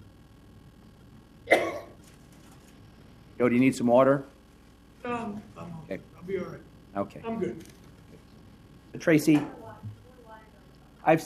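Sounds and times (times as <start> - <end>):
man clearing his throat: 1.4 - 2.0
speech: 3.4 - 4.3, 5.9 - 7.8, 9.0 - 9.6, 11.0 - 11.2.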